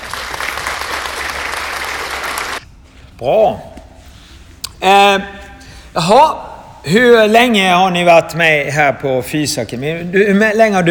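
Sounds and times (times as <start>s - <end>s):
applause: 0.0s - 2.6s
speech: 3.2s - 3.7s, 4.8s - 5.4s, 6.0s - 10.8s.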